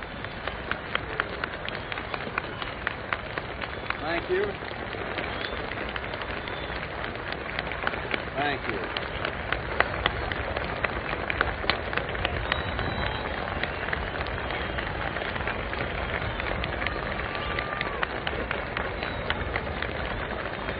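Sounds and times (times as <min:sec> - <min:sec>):
crowd applauding the president: 0:00.0 - 0:20.7
speech: 0:04.1 - 0:05.3, 0:08.4 - 0:09.0.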